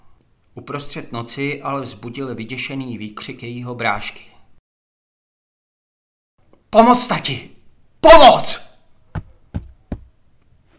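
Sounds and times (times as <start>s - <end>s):
speech: 0.6s - 4.3s, 6.7s - 8.6s
footsteps stomping running on a boat deck: 9.1s - 10.2s.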